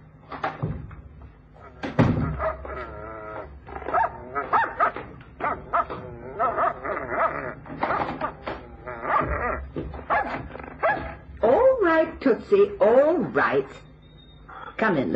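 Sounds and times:
dog whimpering: 1.6s - 11.2s, 13.7s - 14.8s
dog barking: 2.2s - 2.9s, 3.8s - 8.2s, 9.1s - 9.4s, 10.1s - 11.2s
speech: 12.3s - 13.9s, 14.8s - 15.1s.

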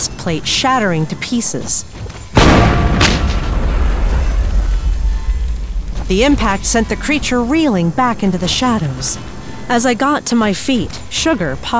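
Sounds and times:
speech: 0.2s - 2.7s, 6.1s - 11.7s
volley of revolver gunshots: 2.4s - 7.8s
heavy low rumble: 2.4s - 9.8s.

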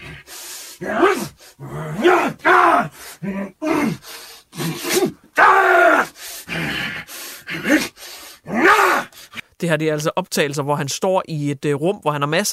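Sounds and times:
Hugh Jackman growling, grunting and shouting voicing Wolverine fight scenes: 0.0s - 4.0s, 4.6s - 9.2s
speech: 0.8s - 3.6s, 9.6s - 12.5s.

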